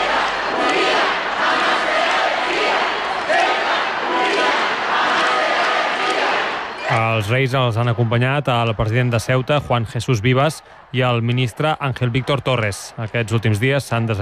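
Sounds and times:
crowd shouting slogans: 0.0 - 7.3, 9.3 - 14.1
large crowd applauding: 0.0 - 14.1
speech: 7.2 - 14.1.

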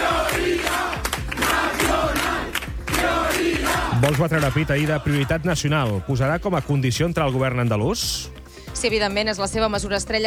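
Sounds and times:
crowd shouting a political chant: 0.0 - 6.2
speech: 4.0 - 10.2.

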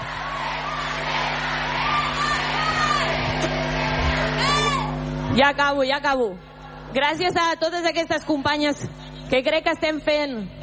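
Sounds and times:
crowd shouting and whooping for a speaker to stay: 0.0 - 5.5
speech: 5.4 - 10.6.

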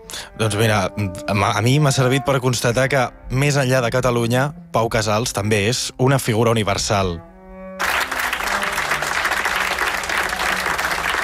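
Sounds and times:
speech: 0.4 - 7.3
long ovation from audience: 7.8 - 11.2.

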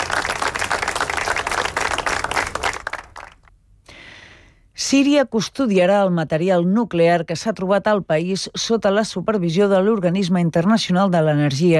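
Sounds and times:
crowd applauding after a minute of silence: 0.0 - 3.5
speech: 4.9 - 11.7.

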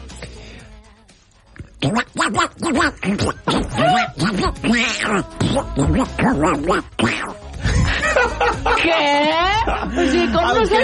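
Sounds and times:
person imitating a cartoon duck's voice: 1.7 - 7.6
speech: 1.8 - 7.4, 8.2 - 10.8
laughter: 7.6 - 10.8.

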